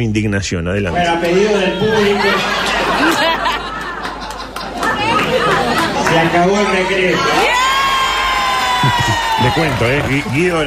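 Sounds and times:
speech: 0.0s - 3.2s, 6.2s - 7.6s, 8.8s - 10.6s
party crowd cheering: 1.0s - 10.6s
laughter: 1.2s - 7.4s, 8.5s - 10.6s.

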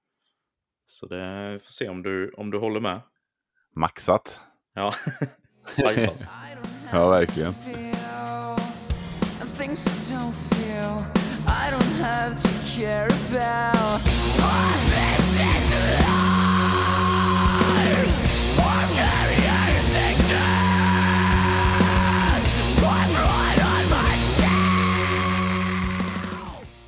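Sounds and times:
speech: 0.9s - 3.1s, 3.8s - 7.8s, 9.6s - 16.1s
laughter: 4.8s - 7.9s
heavy drums: 5.8s - 26.8s
dense guitars: 5.9s - 26.8s
emo song with raw screamed vocals over loud full band: 6.0s - 26.7s.

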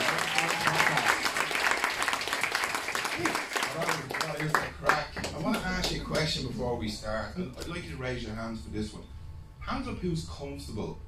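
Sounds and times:
round of applause: 0.0s - 6.3s
speech: 6.5s - 9.1s, 9.7s - 11.0s.

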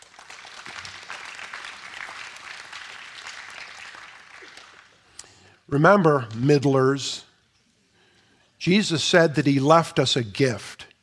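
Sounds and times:
audience applause: 0.0s - 5.1s
speech: 5.7s - 7.3s, 8.6s - 10.8s.

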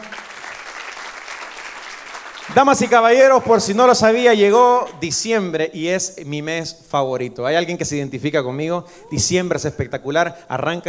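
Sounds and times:
audience applause: 0.0s - 3.2s
speech: 2.5s - 10.8s.

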